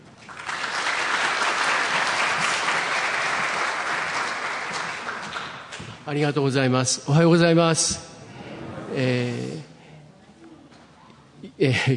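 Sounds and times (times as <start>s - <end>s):
audience applause welcoming a speaker: 0.1s - 5.8s
speech: 6.1s - 8.1s, 9.0s - 9.6s, 11.6s - 11.9s.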